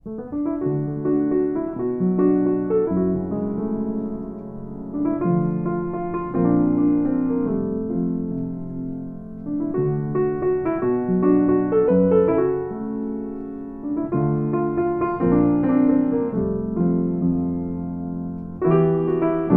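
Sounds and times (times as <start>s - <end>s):
piano: 0.0s - 19.5s.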